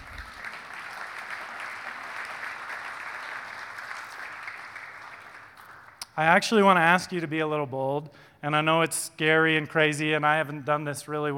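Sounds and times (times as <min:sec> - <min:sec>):
audience applause: 0:00.0 - 0:06.0
speech: 0:06.2 - 0:11.3.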